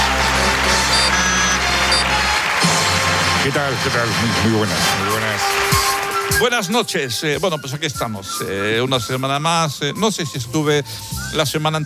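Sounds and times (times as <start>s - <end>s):
studio audience applause: 0.0s - 6.5s
speech: 3.5s - 11.8s.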